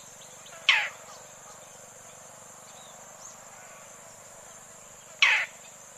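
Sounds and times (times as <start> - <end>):
roller raspy squawk: 0.7 - 1.0, 5.2 - 5.6.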